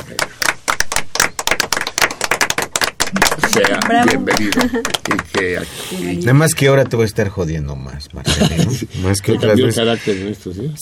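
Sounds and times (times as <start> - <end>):
applause: 0.0 - 5.5
laughter: 3.4 - 5.6, 8.2 - 10.3
speech: 3.6 - 10.8.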